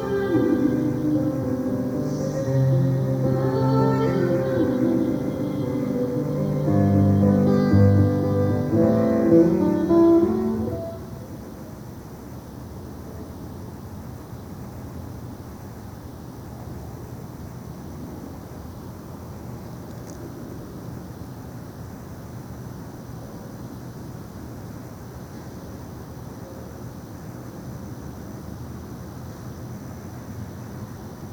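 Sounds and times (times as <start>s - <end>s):
soundcheck: 0.0s - 11.3s.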